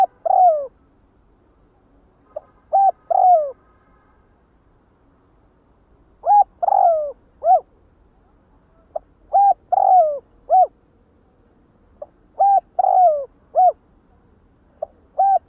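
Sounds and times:
spotted dove cooing: 0.0s - 0.7s, 2.4s - 3.6s, 6.2s - 7.8s, 8.9s - 10.8s, 12.0s - 13.8s, 14.8s - 15.4s.

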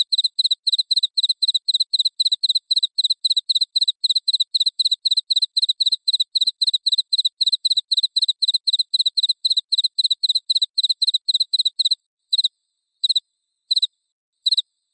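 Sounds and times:
cricket chirping: 0.0s - 14.9s.

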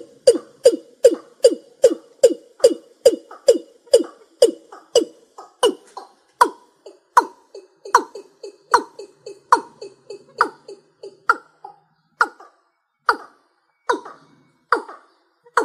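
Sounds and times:
East Asian bullfrog croaking: 0.0s - 14.1s.

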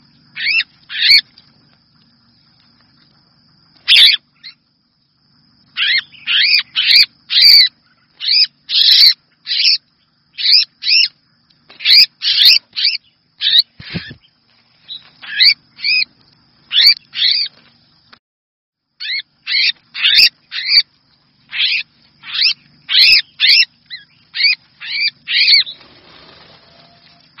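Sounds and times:
red-whiskered bulbul distress call: 0.0s - 1.3s, 3.8s - 4.6s, 5.7s - 16.1s, 16.7s - 17.5s, 19.0s - 27.3s.

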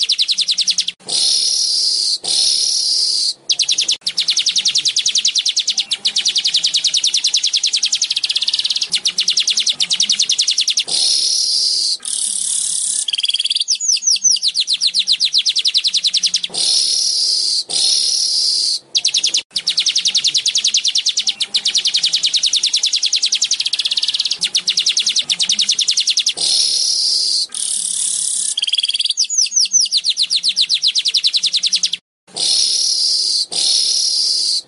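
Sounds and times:
Asian golden weaver chattering: 0.0s - 34.6s.

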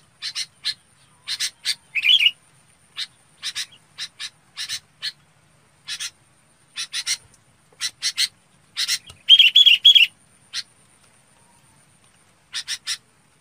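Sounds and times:
Red-whiskered bulbul chattering: 0.2s - 5.2s, 5.8s - 10.8s.

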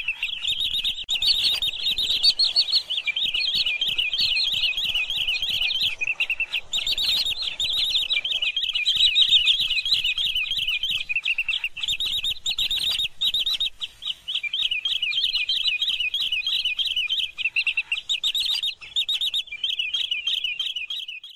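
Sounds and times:
green sandpiper calling: 0.0s - 21.3s.

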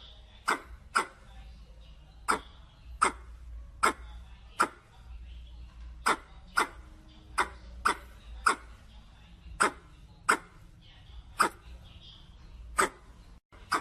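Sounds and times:
red squirrel chuck calls: 0.4s - 1.2s, 2.2s - 4.8s, 6.0s - 8.8s, 9.6s - 10.6s, 13.6s - 13.7s.

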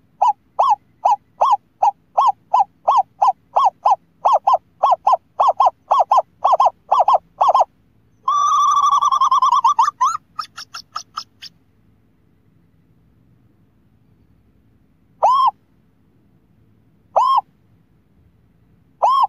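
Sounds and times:
scops owl hooting: 0.0s - 11.5s, 15.2s - 15.6s, 17.1s - 17.5s, 19.0s - 19.2s.

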